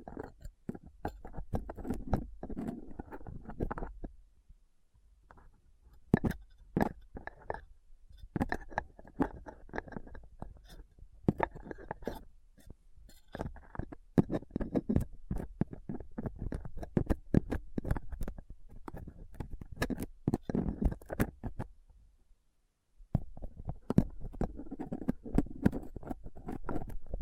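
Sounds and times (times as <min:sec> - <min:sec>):
microphone scraped with a dental pick, tweezers and cotton swab: 0:00.0 - 0:04.1, 0:08.3 - 0:21.7, 0:23.2 - 0:27.2.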